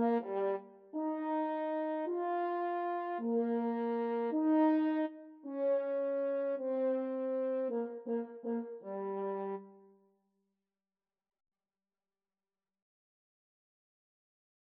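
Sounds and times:
French horn duet playing a minuet: 0:00.0 - 0:09.8.

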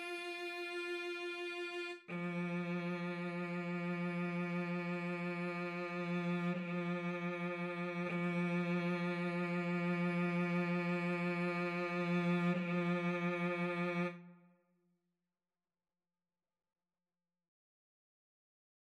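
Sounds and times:
cello duet: 0:00.0 - 0:14.4.

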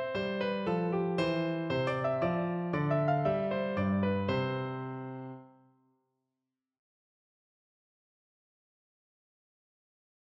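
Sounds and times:
piano sonatina: 0:00.0 - 0:05.7.

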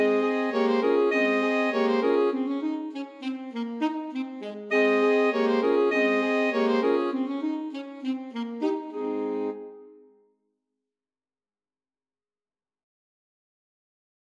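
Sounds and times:
alto saxophone quartet playing a musette: 0:00.0 - 0:09.9.

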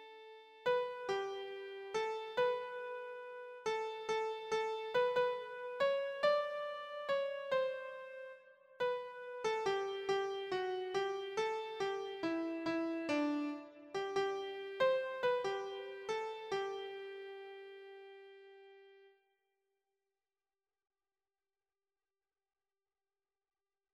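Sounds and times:
keyboard: 0:00.0 - 0:19.1.

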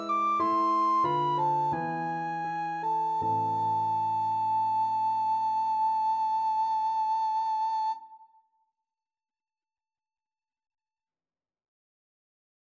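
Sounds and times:
concerto on recorder: 0:00.0 - 0:07.9.

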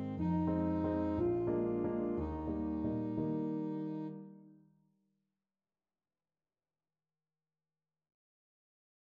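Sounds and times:
alto saxophone playing a waltz: 0:00.0 - 0:04.4.

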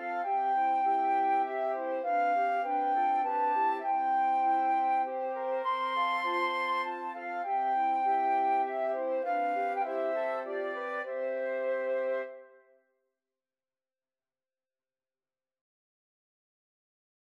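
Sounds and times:
flute choir: 0:00.0 - 0:12.7.

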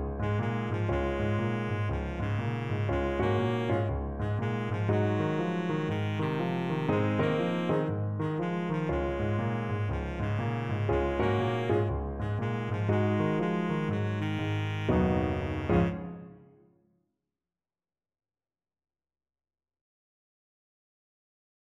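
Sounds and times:
baritone saxophone: 0:00.2 - 0:16.4.

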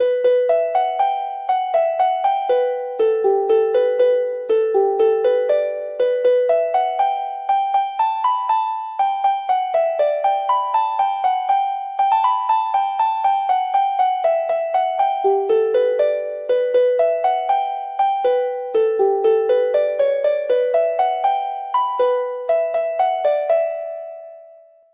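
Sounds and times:
harp: 0:00.0 - 0:24.8.

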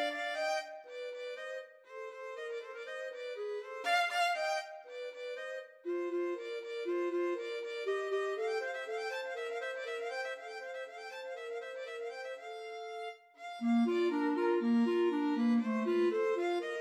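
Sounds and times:
clarinet: 0:00.0 - 0:16.8
violin: 0:00.0 - 0:16.8.

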